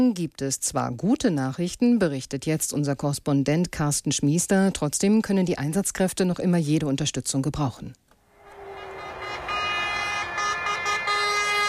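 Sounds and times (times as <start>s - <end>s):
speech: 0.0s - 8.0s
Polish fire engine convoy sirens and horns on the motorway: 8.3s - 11.6s.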